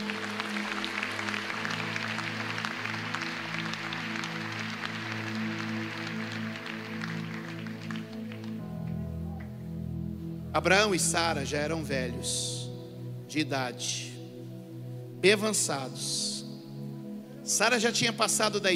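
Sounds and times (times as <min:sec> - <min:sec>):
applause: 0:00.0 - 0:09.5
speech: 0:10.6 - 0:12.6, 0:13.3 - 0:14.1, 0:15.2 - 0:16.3, 0:17.5 - 0:18.7.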